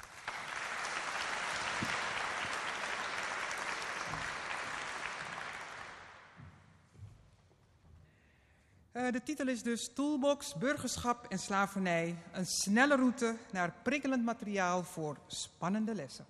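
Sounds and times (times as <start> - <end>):
audience applause: 0.0 - 6.4
speech: 9.1 - 16.2.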